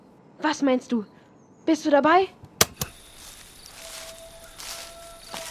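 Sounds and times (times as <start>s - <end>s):
speech: 0.5s - 2.4s
wolves howling: 3.7s - 5.4s.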